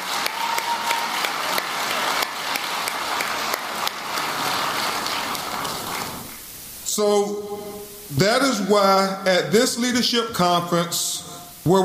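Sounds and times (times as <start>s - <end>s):
crowd applause: 0.0s - 6.5s
speech: 7.0s - 7.5s, 8.1s - 11.8s.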